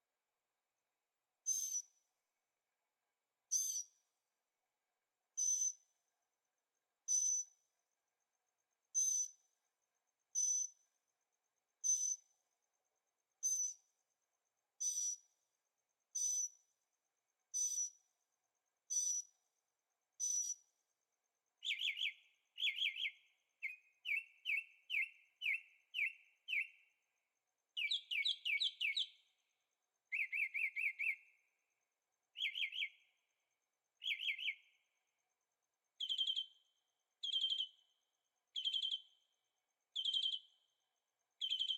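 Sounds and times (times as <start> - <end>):
bird song: 1.5 - 2.0, 3.5 - 4.0, 5.4 - 5.9, 7.1 - 7.6, 11.8 - 12.4, 13.4 - 13.9, 14.8 - 15.4, 17.5 - 18.1, 18.9 - 19.4, 20.2 - 20.7, 21.6 - 29.5, 30.1 - 31.7, 32.3 - 33.3, 34.0 - 35.0, 36.0 - 40.8, 41.4 - 41.7.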